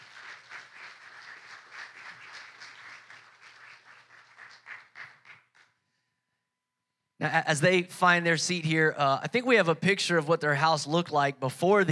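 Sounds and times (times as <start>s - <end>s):
church audience clapping to welcome guests: 0.0s - 5.8s
speech: 7.2s - 11.9s.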